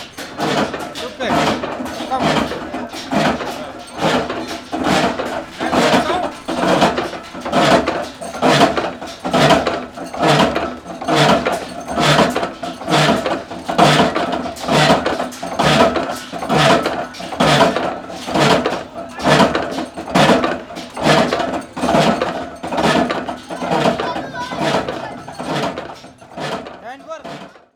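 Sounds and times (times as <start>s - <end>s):
bowl-pressing machine in Jodhpur: 0.0s - 27.7s.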